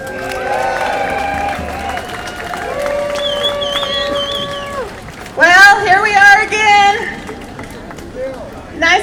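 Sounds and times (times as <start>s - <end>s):
held whistle-like tones: 0.0s - 5.4s
crowd applause and cheering welcoming activist speaker Cindy Sheehan: 0.0s - 8.8s.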